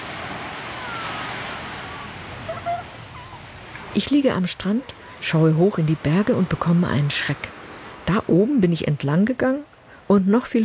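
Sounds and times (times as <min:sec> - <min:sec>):
surf rolling onto a sandy beach: 0:00.0 - 0:04.1
speech: 0:04.0 - 0:10.6.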